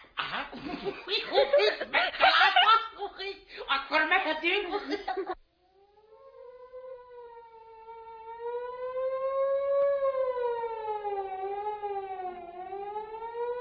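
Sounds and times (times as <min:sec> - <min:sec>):
laughter: 0:00.2 - 0:03.6, 0:04.4 - 0:05.4
fire siren wailing: 0:05.6 - 0:13.5.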